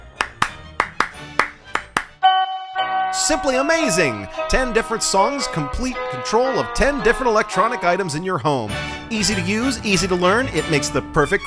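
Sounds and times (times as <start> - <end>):
hand claps: 0.0 - 2.2
speech: 3.2 - 11.4.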